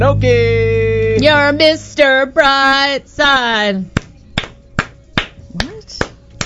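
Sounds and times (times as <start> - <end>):
speech: 0.1 - 0.6, 1.2 - 4.0
person clapping: 4.0 - 6.4.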